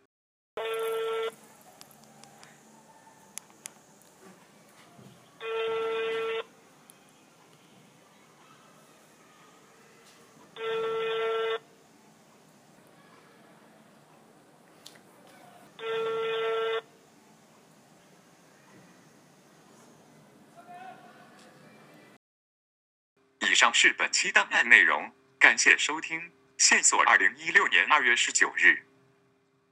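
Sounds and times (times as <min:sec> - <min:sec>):
unanswered telephone ringback tones: 0:00.6 - 0:01.4, 0:05.4 - 0:06.5, 0:10.6 - 0:11.6, 0:15.8 - 0:16.9
speech: 0:23.6 - 0:28.9.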